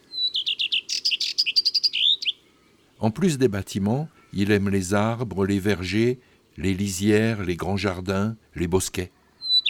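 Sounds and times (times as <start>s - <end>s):
common redstart singing whistle and chirps: 0.1s - 2.4s, 9.4s - 9.6s
speech: 3.0s - 9.2s.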